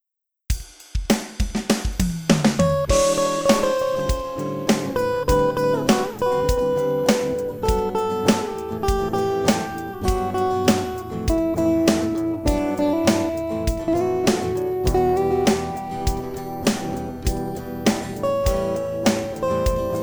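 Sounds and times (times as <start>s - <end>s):
instrumental music: 0.5s - 20.0s.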